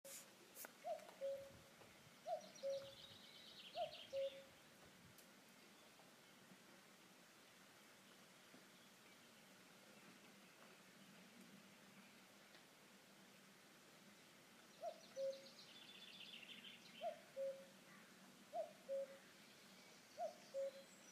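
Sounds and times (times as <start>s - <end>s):
cuckoo calling: 0.8s - 1.6s, 2.2s - 4.5s, 14.8s - 15.6s, 17.0s - 17.8s, 18.5s - 19.3s, 20.1s - 21.1s.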